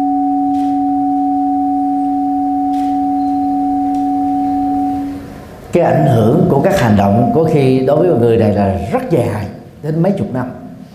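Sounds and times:
bell ringing: 0:00.1 - 0:08.3
speech: 0:05.7 - 0:10.6.

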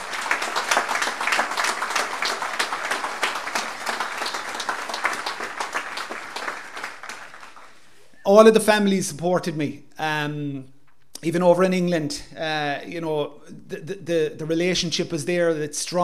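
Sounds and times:
audience applause: 0:00.0 - 0:08.0
speech: 0:08.3 - 0:16.0.

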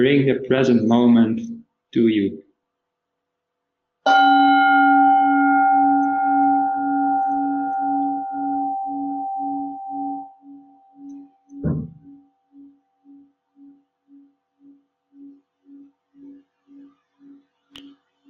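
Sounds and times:
speech: 0:00.0 - 0:02.4
meditation bell ringing: 0:04.1 - 0:17.4
soft knock: 0:11.6 - 0:12.1.

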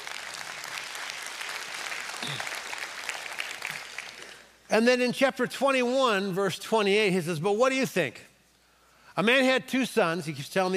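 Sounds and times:
audience round of applause: 0:00.0 - 0:04.5
speech: 0:02.2 - 0:02.5, 0:04.7 - 0:08.3, 0:09.2 - 0:10.7.

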